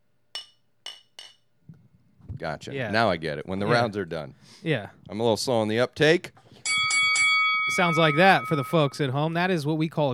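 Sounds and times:
drinking glasses clinking together in a toast: 0:00.4 - 0:01.5, 0:06.6 - 0:09.3
speech: 0:02.4 - 0:06.4, 0:07.8 - 0:10.1.

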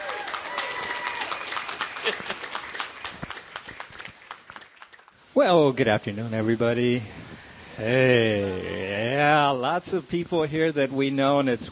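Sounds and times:
audience applause: 0:00.0 - 0:05.2
speech: 0:02.1 - 0:02.3, 0:05.4 - 0:07.2, 0:07.8 - 0:11.7.

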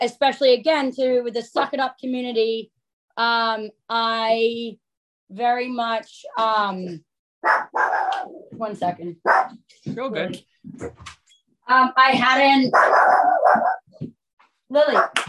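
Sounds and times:
speech: 0:00.0 - 0:15.2
dog barking and whimpering with high yips: 0:07.4 - 0:08.5, 0:09.2 - 0:09.6, 0:12.7 - 0:13.9, 0:14.9 - 0:15.2.

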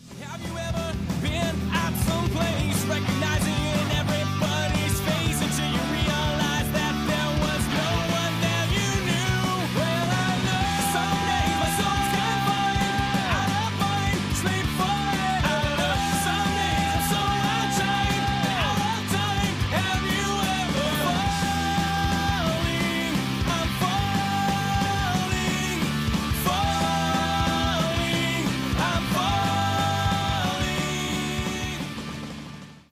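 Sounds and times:
blast beat drums: 0:00.0 - 0:32.8
distorted guitars: 0:00.0 - 0:32.9
raw punk rock song: 0:00.0 - 0:32.9.

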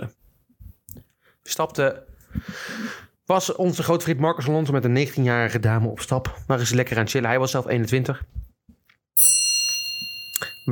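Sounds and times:
speech: 0:01.5 - 0:08.4
clock chime striking: 0:09.2 - 0:10.6.

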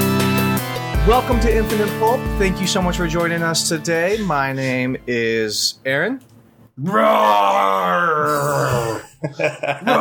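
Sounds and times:
speech: 0:01.0 - 0:09.9
person's voice imitating a dinosaur roar: 0:06.8 - 0:09.1
laughter: 0:08.7 - 0:09.9.

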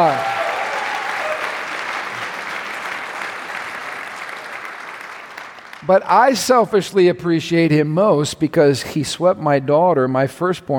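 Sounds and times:
speech: 0:00.0 - 0:00.3, 0:05.9 - 0:10.7
audience applause: 0:00.0 - 0:06.1.

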